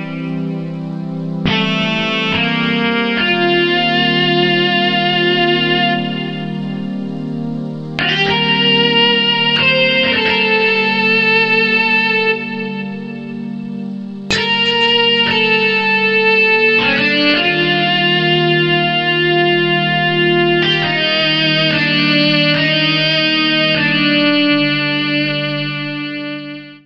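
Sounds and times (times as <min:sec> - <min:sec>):
synth lead: 0:00.0 - 0:26.6.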